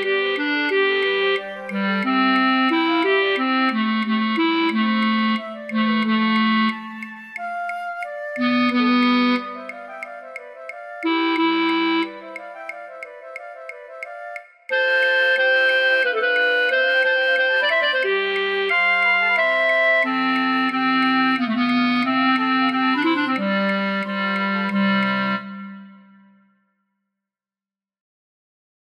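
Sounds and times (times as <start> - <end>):
flute choir with alto flute playing a march: 0.0 - 26.3.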